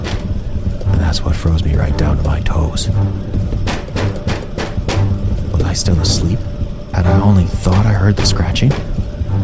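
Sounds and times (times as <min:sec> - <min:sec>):
knocking on a door: 0:00.0 - 0:00.4, 0:03.4 - 0:05.7, 0:07.5 - 0:09.1
speech: 0:01.1 - 0:03.4, 0:05.8 - 0:08.9.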